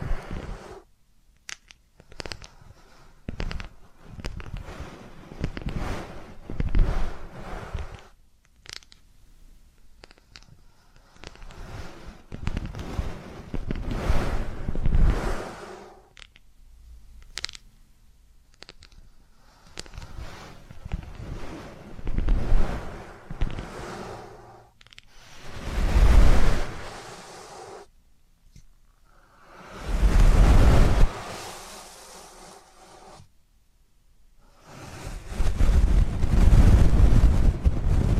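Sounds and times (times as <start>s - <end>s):
crackly rubbing and scratching during ear canal cleaning: 0.0s - 9.1s, 9.7s - 16.5s, 17.2s - 17.7s, 18.4s - 33.4s, 34.5s - 38.1s
loud rushing scrapes: 2.3s - 8.2s, 10.7s - 16.1s, 19.4s - 27.9s, 29.3s - 33.3s, 34.5s - 38.1s.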